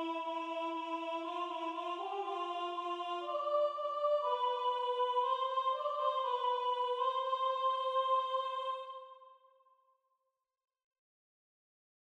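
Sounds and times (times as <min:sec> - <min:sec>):
soprano singing: 0:00.0 - 0:09.2.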